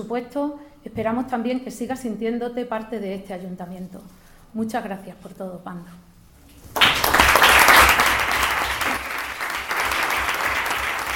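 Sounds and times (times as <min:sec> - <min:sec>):
speech: 0:00.0 - 0:06.1
applause from audience: 0:06.7 - 0:11.1.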